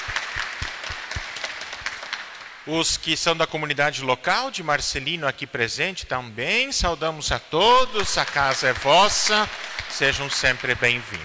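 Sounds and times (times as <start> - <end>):
audience applause welcoming visitors at a community gathering: 0.0 - 2.9, 8.0 - 11.2
speech: 2.6 - 11.2.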